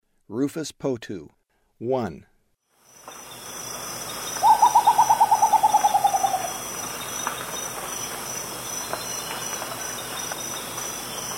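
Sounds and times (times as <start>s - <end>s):
rufous potoo soft descending hoots in South American eastern lowlands: 4.4s - 6.6s.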